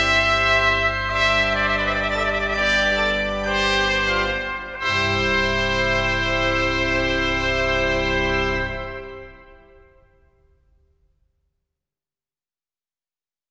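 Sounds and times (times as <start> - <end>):
trumpet playing a sonata: 0.0 - 10.5.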